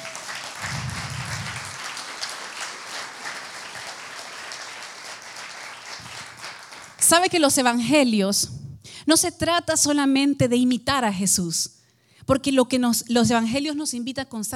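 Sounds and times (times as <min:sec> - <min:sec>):
crowd applause: 0:00.0 - 0:07.1
speech: 0:07.1 - 0:14.5.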